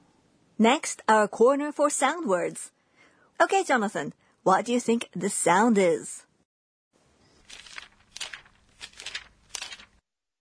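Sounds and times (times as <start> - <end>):
speech: 0.6 - 2.8, 3.4 - 6.3
book pages turning: 7.2 - 10.0.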